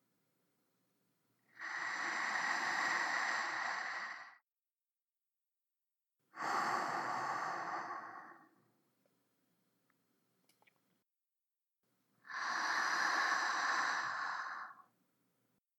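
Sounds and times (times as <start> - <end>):
sleeping breath: 1.5 - 4.4, 6.3 - 8.6, 12.2 - 14.9.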